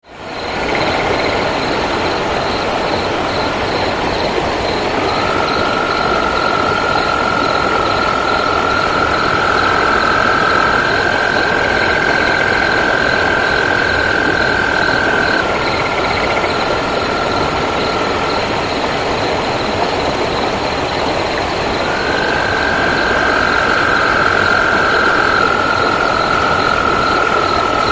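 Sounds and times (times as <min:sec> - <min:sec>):
night ambience in Kolob Canyon, Utah: 0:00.1 - 0:27.9.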